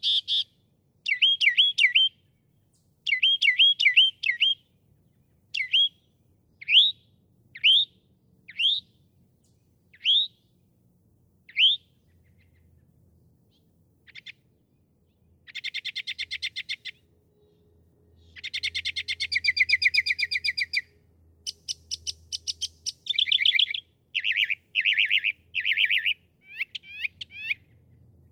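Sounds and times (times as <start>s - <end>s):
northern mockingbird singing: 0.0s - 2.4s, 3.0s - 9.0s, 9.9s - 10.5s, 11.5s - 12.8s, 13.5s - 14.5s, 15.5s - 17.6s, 18.2s - 20.9s, 21.5s - 27.8s.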